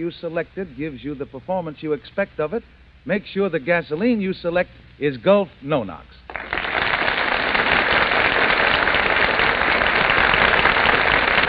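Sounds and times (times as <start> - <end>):
speech: 0.0 - 6.5
audience applause: 6.3 - 11.4.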